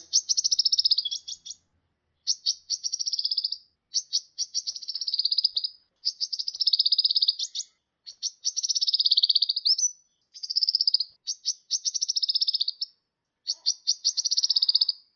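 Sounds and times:
sunbird twittering with whistled and ticking notes: 0.0s - 1.6s, 2.2s - 15.0s.

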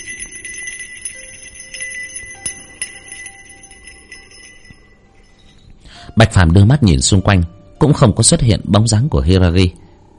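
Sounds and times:
kagura ritual bells jingling: 0.0s - 5.9s
speech: 6.2s - 9.8s.

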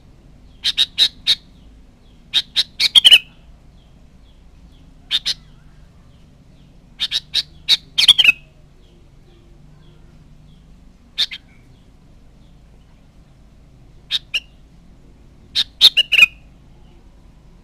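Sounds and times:
sooty-headed bulbul chirps: 0.4s - 5.8s, 7.0s - 9.0s, 9.8s - 11.9s, 14.0s - 14.7s, 15.5s - 16.5s.

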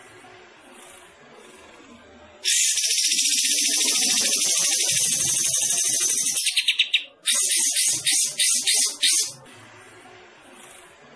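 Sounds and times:
bulbul singing rapid bright chattering notes: 2.4s - 9.4s.

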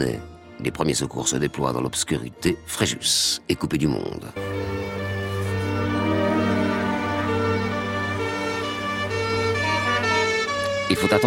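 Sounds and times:
speech: 0.0s - 4.6s, 11.0s - 11.2s
fire engine sirens blaring at night during flood rescue work in Fréjus, France: 4.4s - 11.2s.

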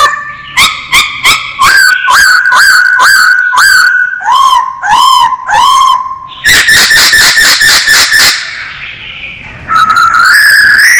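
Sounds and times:
masked laughingthrush singing: 0.0s - 10.9s.

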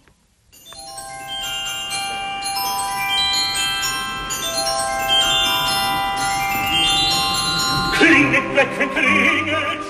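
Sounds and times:
bright silvery bells chiming a melodic passage: 0.5s - 9.6s.

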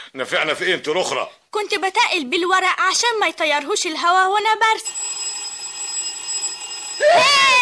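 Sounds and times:
speech: 0.1s - 5.3s
telephone ringing with a warbling electronic ring: 4.7s - 7.5s.

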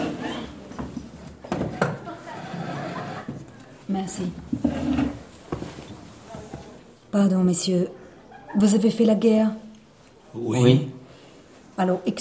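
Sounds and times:
laughter: 1.8s - 3.6s
wooden chair dragged across the floor: 2.3s - 3.5s, 4.2s - 6.8s
speech: 3.9s - 5.1s, 7.1s - 8.0s, 8.6s - 9.6s, 10.3s - 10.9s, 11.8s - 12.2s.

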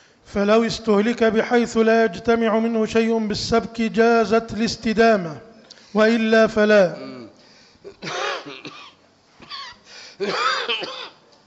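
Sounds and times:
speech: 0.3s - 7.1s, 10.2s - 10.8s
coughing and throat clearing: 7.9s - 11.2s.

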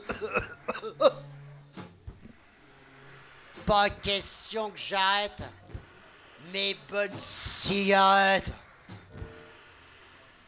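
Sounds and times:
coughing: 0.0s - 1.3s
speech: 3.7s - 5.6s, 6.5s - 8.6s.

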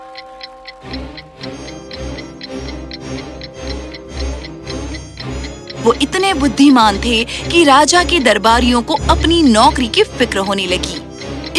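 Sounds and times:
clock ticking: 0.0s - 11.5s
speech: 5.8s - 11.0s.

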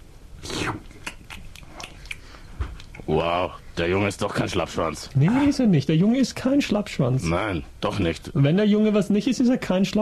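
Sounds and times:
person chewing, crunching and swallowing thumbtacks: 0.5s - 3.1s
speech: 3.1s - 9.9s.

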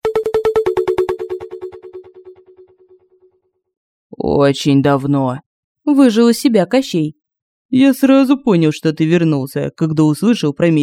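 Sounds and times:
telephone ringing with a buzzing trill: 0.0s - 2.8s
speech: 4.2s - 10.8s.

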